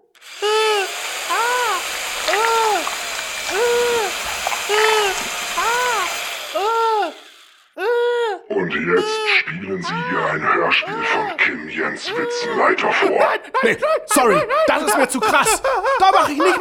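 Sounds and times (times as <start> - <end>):
electric drill whining: 0.2 - 7.8
speech: 8.8 - 16.6
laughter: 9.0 - 16.6.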